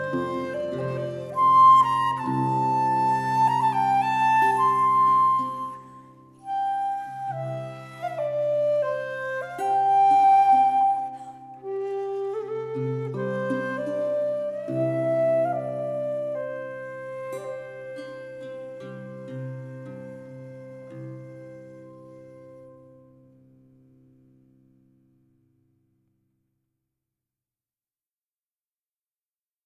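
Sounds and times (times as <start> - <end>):
flute: 0.0 - 23.2.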